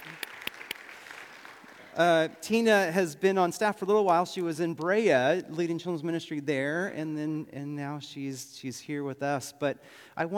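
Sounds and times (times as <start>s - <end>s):
audience applause: 0.0s - 2.3s
speech: 2.0s - 10.3s.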